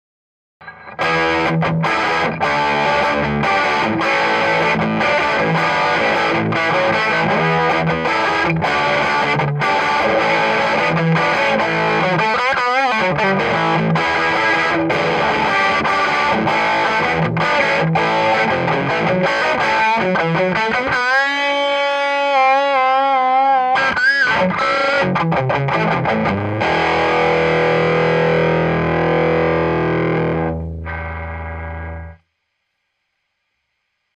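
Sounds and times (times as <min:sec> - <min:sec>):
Gibson ES-335 electric guitar with distortion: 0:00.6 - 0:32.6.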